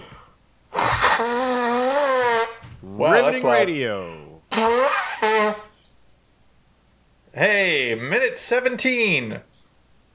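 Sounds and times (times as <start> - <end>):
person blowing nose: 0.7 - 2.6, 4.5 - 5.8
speech: 3.0 - 4.7, 7.4 - 9.5.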